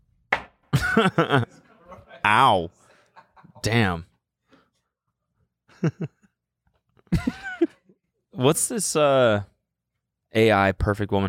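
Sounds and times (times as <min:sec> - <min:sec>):
knocking on wood: 0:00.3 - 0:00.6
laughter: 0:00.8 - 0:04.0, 0:05.7 - 0:06.3, 0:07.1 - 0:08.0
speech: 0:01.0 - 0:01.5, 0:02.2 - 0:02.8, 0:03.6 - 0:04.1, 0:05.8 - 0:06.2, 0:08.4 - 0:09.5, 0:10.3 - 0:11.2.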